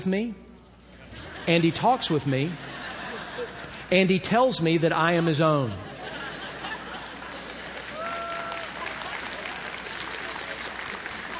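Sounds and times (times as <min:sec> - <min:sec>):
speech: 0:00.0 - 0:00.4, 0:01.5 - 0:02.7, 0:03.4 - 0:05.9
laughter: 0:00.9 - 0:04.0, 0:05.0 - 0:11.3
crowd applauding: 0:06.4 - 0:11.3.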